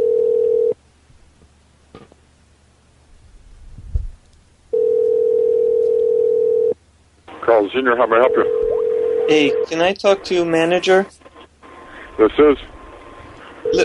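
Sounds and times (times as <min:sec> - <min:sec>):
phone dial tone: 0:00.0 - 0:00.8, 0:04.7 - 0:06.8, 0:08.2 - 0:09.7, 0:13.6 - 0:13.8
low thump: 0:03.8 - 0:04.2
speech: 0:07.5 - 0:08.6, 0:09.3 - 0:11.2, 0:12.2 - 0:12.7.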